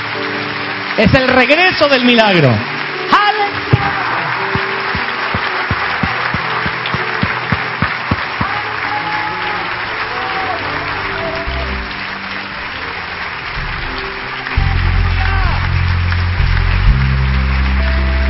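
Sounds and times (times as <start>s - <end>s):
crowd noise: 0.0s - 18.2s
large audience applauding: 0.0s - 18.2s
speech: 1.0s - 4.1s
regular low thumping beat: 4.6s - 8.5s.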